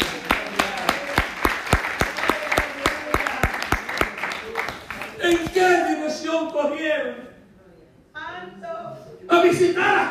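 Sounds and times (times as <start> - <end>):
audience applause: 0.0 - 5.5
speech: 5.3 - 7.2.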